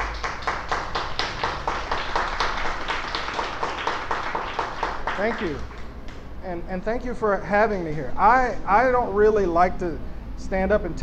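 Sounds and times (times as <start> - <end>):
audience applause: 0.0 - 6.2
speech: 5.2 - 5.7, 6.4 - 11.0.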